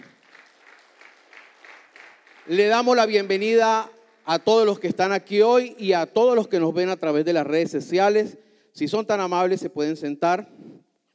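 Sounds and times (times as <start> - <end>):
audience applause: 0.0 - 3.2
speech: 2.4 - 10.6.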